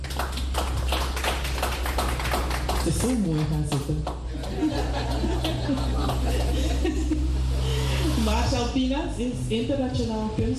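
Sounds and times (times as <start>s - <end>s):
audience applause: 0.0s - 6.7s
speech: 3.0s - 5.9s, 8.2s - 10.5s
laughter: 4.2s - 8.2s.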